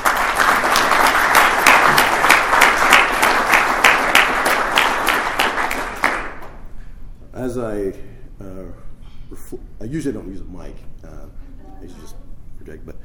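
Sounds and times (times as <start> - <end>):
audience applause: 0.0 - 6.6
speech: 7.6 - 13.0.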